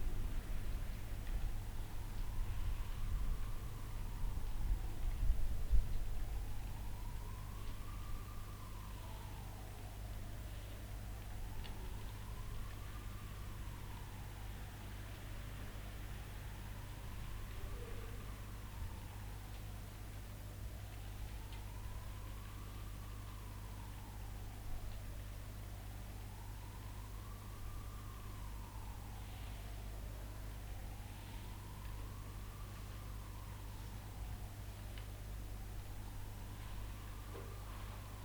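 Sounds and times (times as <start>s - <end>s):
rain: 0.1s - 38.2s.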